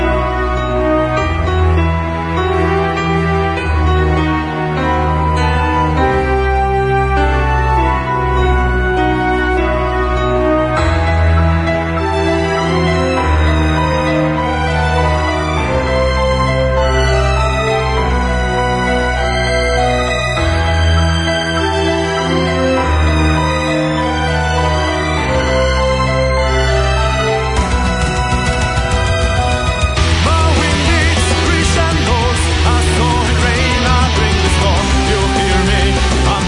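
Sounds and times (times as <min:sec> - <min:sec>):
symphonic metal music: 0:00.0 - 0:36.4.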